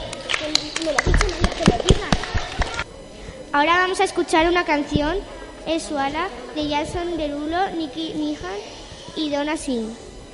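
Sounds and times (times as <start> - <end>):
applause: 0.0 - 2.8
speech: 0.8 - 2.3, 3.6 - 10.1.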